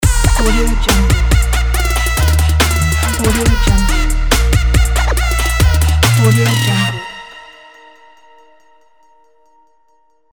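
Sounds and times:
trap logo sound: 0.0 - 7.6.

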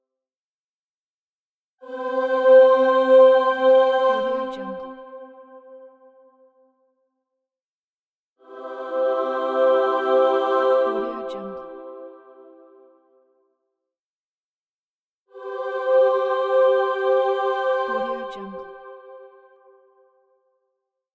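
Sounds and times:
heavenly angel choir singing: 1.8 - 5.6, 8.4 - 12.9, 15.3 - 19.8.

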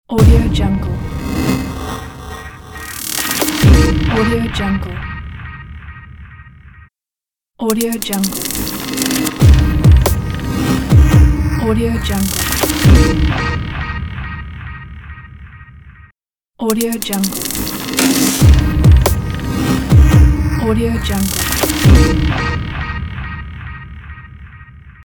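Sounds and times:
glitch logo reveal sting: 0.2 - 4.4, 8.3 - 13.6, 17.3 - 22.8.

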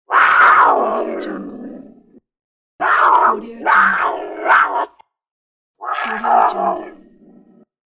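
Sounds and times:
cougar roar: 0.1 - 2.2, 2.8 - 5.0, 5.8 - 7.7.

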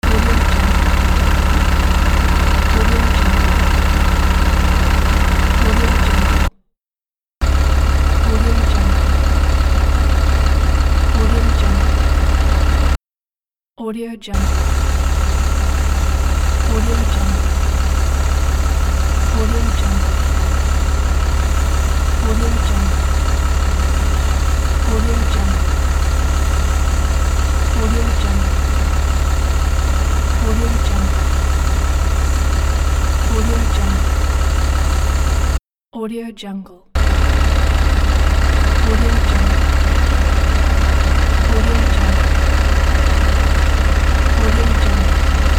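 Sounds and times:
bus idling: 0.0 - 6.5, 7.4 - 13.0, 14.4 - 35.6, 37.0 - 45.5.

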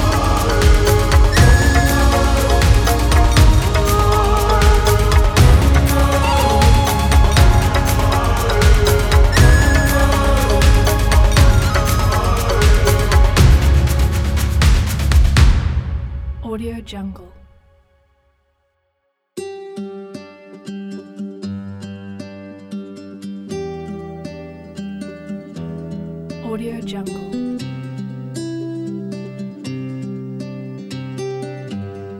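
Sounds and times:
cinematic ethnic world music: 0.0 - 17.8.

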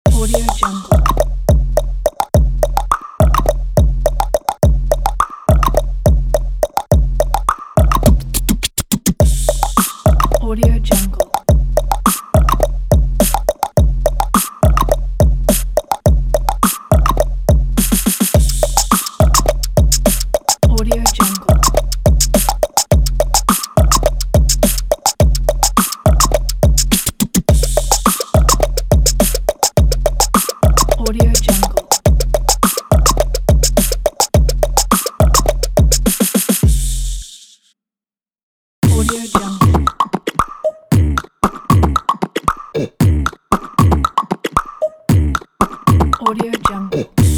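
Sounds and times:
beatbox: 0.1 - 37.3, 38.8 - 47.3.

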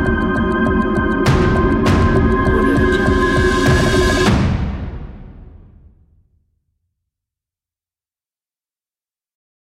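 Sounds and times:
suspense ambient music: 0.0 - 5.9.

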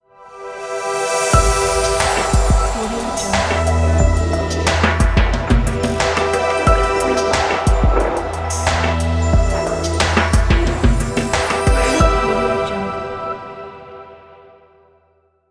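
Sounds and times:
lounge music logo: 1.0 - 12.8.

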